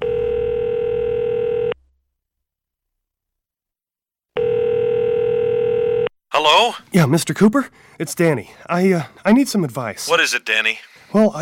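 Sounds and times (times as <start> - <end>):
dial tone of a telephone call being placed: 0.0 - 1.8, 4.4 - 6.1
speech: 6.4 - 11.4.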